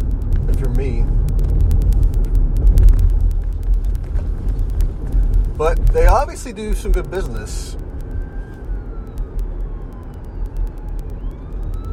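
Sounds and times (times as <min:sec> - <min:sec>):
scattered clicks: 0:00.0 - 0:11.9
street traffic rumble: 0:00.0 - 0:11.9
speech: 0:00.6 - 0:01.4, 0:05.6 - 0:07.9
ambulance siren passing by: 0:07.5 - 0:11.9.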